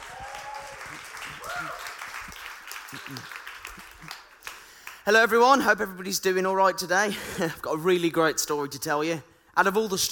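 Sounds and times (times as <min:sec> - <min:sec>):
round of applause: 0:00.0 - 0:05.0
speech: 0:03.0 - 0:03.4, 0:05.0 - 0:10.0.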